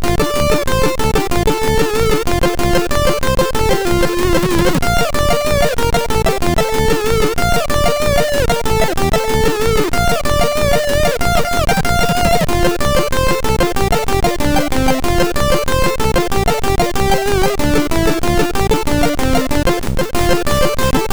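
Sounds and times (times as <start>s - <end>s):
humppa music on MOS6581R2 sound chip: 0.0s - 21.1s.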